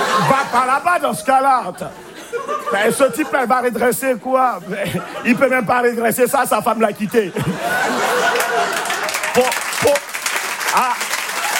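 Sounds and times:
laughter: 0.0 - 11.5
speech: 0.2 - 8.7, 9.3 - 10.0
audience applause: 7.7 - 11.5.

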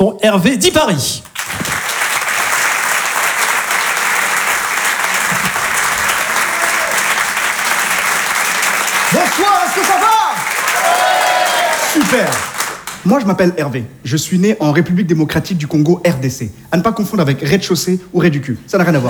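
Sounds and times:
speech: 0.0 - 1.8, 9.1 - 10.2, 11.9 - 19.0
audience applauding: 1.2 - 13.2.

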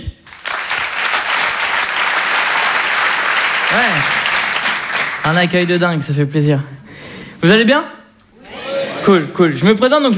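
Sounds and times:
audience applauding warmly: 0.2 - 5.8
speech: 3.7 - 4.2, 5.3 - 6.8, 7.4 - 8.0, 9.0 - 10.1.

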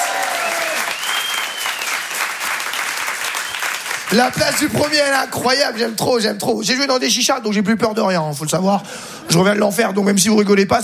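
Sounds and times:
comedy show audience applauding: 0.0 - 4.9
whistle from the crowd: 0.8 - 2.0
speech: 4.1 - 10.8.

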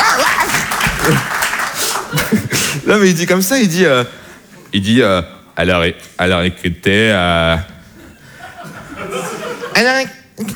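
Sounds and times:
audience applause: 0.0 - 2.8
laughter: 0.0 - 3.0, 7.9 - 10.1
speech: 1.1 - 1.3, 2.9 - 7.7, 9.8 - 10.5.

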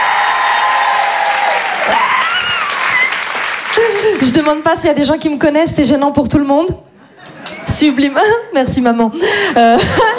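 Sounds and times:
crowd cheering with high-pitched whoops and squeals: 0.0 - 4.2
audience applause: 0.0 - 4.5
speech: 1.9 - 2.2, 3.8 - 6.9, 7.8 - 10.1.

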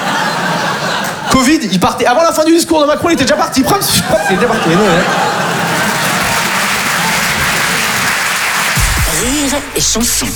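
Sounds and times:
laughter: 0.0 - 1.9, 3.1 - 10.3
speech: 1.4 - 5.4, 9.2 - 10.3
audience applause: 4.2 - 10.3.

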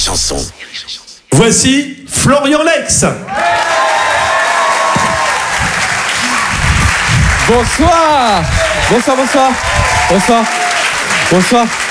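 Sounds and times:
speech: 0.1 - 3.5, 7.5 - 10.6, 11.3 - 11.8
comedy show audience cheering and whooping: 3.3 - 6.6, 8.2 - 11.3
comedy show audience clapping: 3.3 - 11.9.

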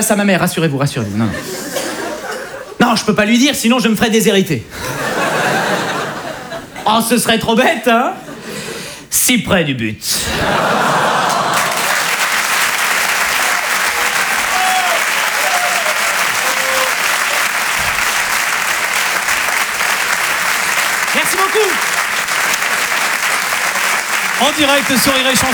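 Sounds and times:
speech: 0.0 - 1.8, 2.8 - 5.1, 6.9 - 8.2, 9.1 - 11.1, 24.6 - 25.5
laughter: 1.0 - 2.8, 4.7 - 6.9, 10.2 - 25.5
audience applause at a comedy show: 10.4 - 25.5.

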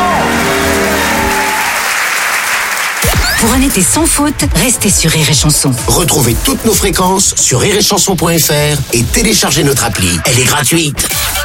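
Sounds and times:
audience applause: 0.0 - 3.1
speech: 3.6 - 11.4.

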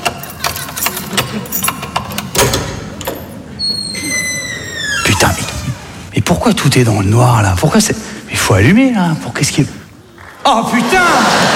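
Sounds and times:
keys jingling and scraping in a lock: 0.0 - 6.1
door hinge squeaking: 0.0 - 6.2
laughter: 0.8 - 2.0, 10.2 - 11.5
speech: 6.3 - 9.8, 10.5 - 11.5.

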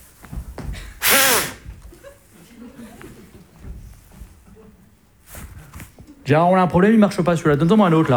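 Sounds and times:
blowing into a breathalyzer: 1.0 - 1.8
laughter: 1.8 - 5.0, 7.5 - 8.1
speech: 6.3 - 8.1.

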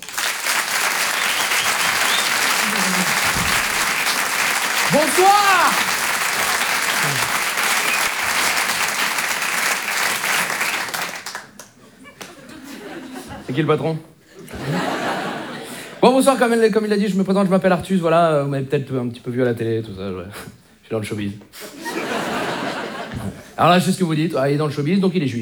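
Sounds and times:
audience applauding loudly: 0.0 - 12.4
laughter: 0.9 - 13.7, 14.3 - 16.0, 21.6 - 23.6
speech: 5.0 - 5.9, 13.6 - 14.1, 16.1 - 21.7, 23.6 - 25.4.

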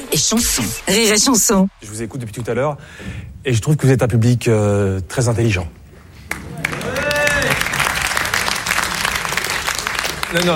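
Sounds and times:
speech: 0.1 - 5.8, 10.3 - 10.5
audience applause: 6.3 - 10.5.

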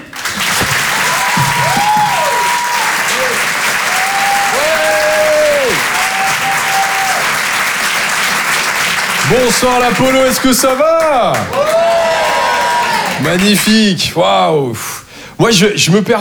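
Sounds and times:
comedy club audience applauding a stand-up comedian: 0.0 - 13.8
shouts and whoops from the audience: 0.8 - 7.4, 11.0 - 13.3
speech: 9.3 - 11.8, 13.2 - 16.2.

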